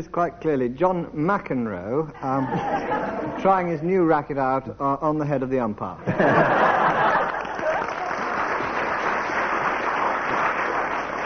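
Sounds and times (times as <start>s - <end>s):
speech: 0.0s - 6.7s
laughter: 2.2s - 3.4s, 6.0s - 8.4s
audience applause: 6.6s - 11.2s.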